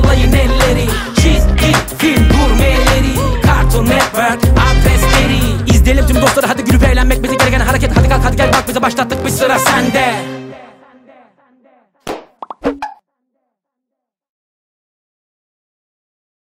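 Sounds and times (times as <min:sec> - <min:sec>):
rap song: 0:00.0 - 0:12.0.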